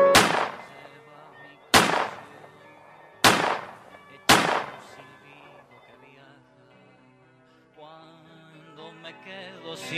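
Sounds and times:
gunshots: 0:00.1 - 0:00.8, 0:01.7 - 0:02.5, 0:03.3 - 0:05.1.

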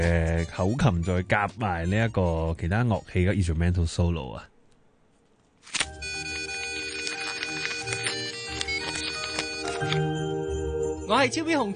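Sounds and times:
speech: 0:00.0 - 0:04.5, 0:11.1 - 0:11.7
telephone ringing with a bright electronic tone: 0:05.9 - 0:10.4.

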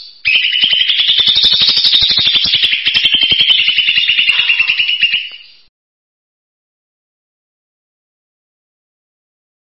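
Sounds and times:
bird song: 0:00.0 - 0:05.7.

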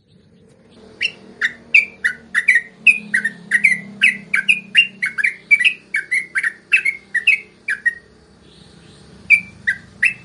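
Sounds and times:
Yellow-vented Bulbul singing in tembakan and ropel styles: 0:00.0 - 0:10.2.

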